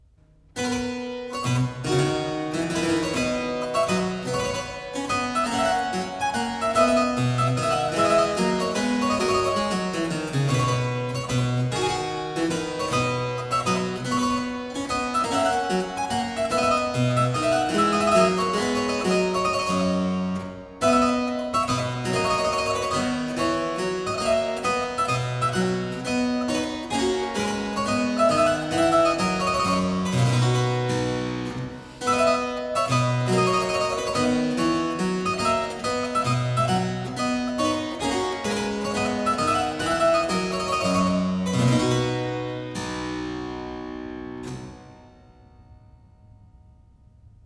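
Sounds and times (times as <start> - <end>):
trumpet tune on harpsichord: 0.6 - 45.2.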